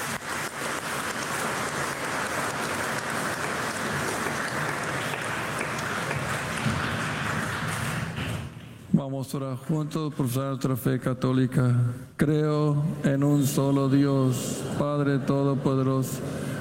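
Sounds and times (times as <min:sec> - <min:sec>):
audience applause: 0:00.0 - 0:08.6
speech: 0:09.1 - 0:16.4.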